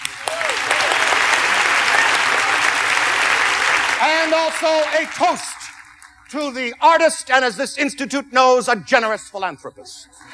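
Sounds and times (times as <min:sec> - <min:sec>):
audience applause: 0:00.0 - 0:06.3
speech: 0:04.3 - 0:05.6, 0:06.3 - 0:10.3.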